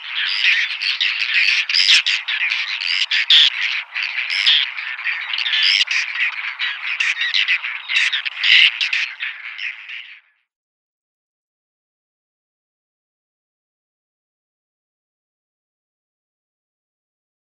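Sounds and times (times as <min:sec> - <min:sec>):
whiskered tern scratchy calls: 0:00.0 - 0:10.2.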